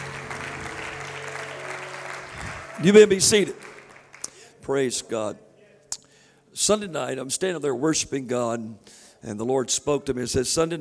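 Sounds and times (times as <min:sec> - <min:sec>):
church congregation clapping at a Saturday night service: 0:00.0 - 0:04.7
speech: 0:02.8 - 0:03.7, 0:04.7 - 0:05.4, 0:06.6 - 0:10.7.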